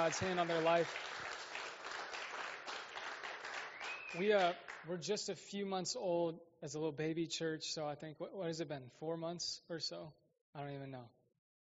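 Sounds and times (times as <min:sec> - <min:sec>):
speech: 0:00.0 - 0:01.3, 0:04.1 - 0:11.2
audience applause: 0:00.0 - 0:04.9.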